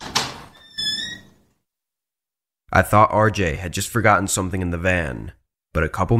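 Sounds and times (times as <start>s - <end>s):
building front door latch clunk: 0.0s - 1.0s
door hinge squeaking: 0.0s - 1.5s
speech: 2.8s - 6.1s.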